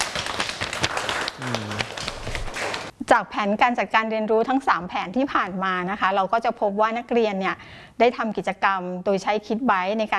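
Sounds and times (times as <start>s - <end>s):
students applauding: 0.0s - 2.9s
speech: 3.1s - 10.1s.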